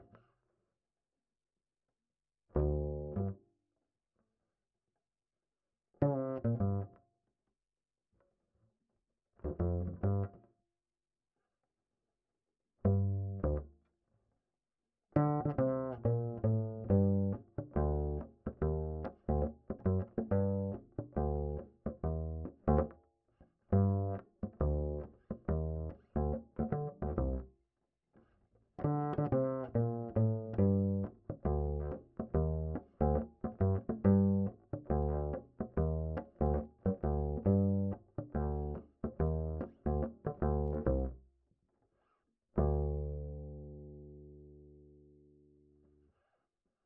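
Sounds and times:
bass line: 0:02.6 - 0:03.4, 0:09.5 - 0:10.3, 0:12.9 - 0:13.7, 0:15.2 - 0:22.9, 0:23.7 - 0:27.5, 0:28.8 - 0:41.2, 0:42.6 - 0:45.3.

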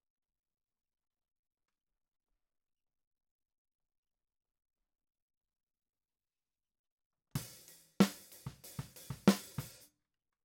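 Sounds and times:
snare drum: 0:07.4 - 0:09.8.

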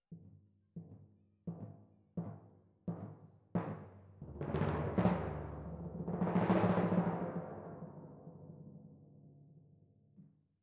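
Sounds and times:
timpani: 0:03.6 - 0:08.8.

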